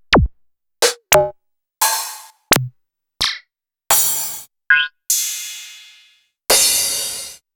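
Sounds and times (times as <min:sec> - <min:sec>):
Roland SH-32 drum set: 0:00.1 - 0:01.1, 0:01.8 - 0:02.7, 0:03.9 - 0:04.4, 0:05.1 - 0:07.4.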